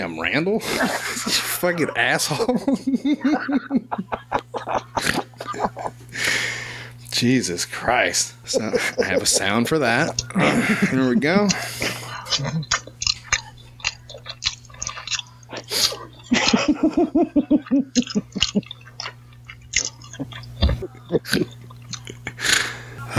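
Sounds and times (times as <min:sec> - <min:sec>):
speech: 0:00.0 - 0:05.2, 0:07.2 - 0:12.8, 0:16.5 - 0:18.8, 0:20.2 - 0:21.6
laughter: 0:00.5 - 0:06.3, 0:08.4 - 0:13.5, 0:15.7 - 0:18.8, 0:20.1 - 0:23.1
mukbang-style wet chewing and crunching: 0:11.4 - 0:22.4.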